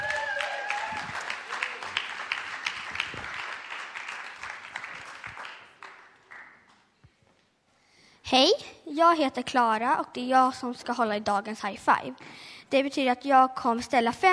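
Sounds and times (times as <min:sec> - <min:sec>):
audience applause: 0:00.0 - 0:06.6
speech: 0:08.3 - 0:14.3.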